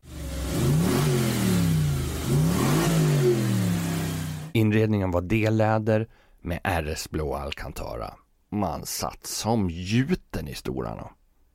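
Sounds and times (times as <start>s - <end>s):
V8 engine roaring: 0.0s - 4.5s
speech: 4.6s - 11.2s.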